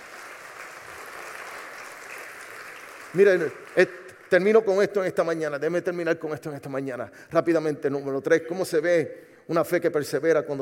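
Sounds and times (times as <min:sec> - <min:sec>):
audience applause: 0:00.0 - 0:04.4
speech: 0:03.1 - 0:10.6.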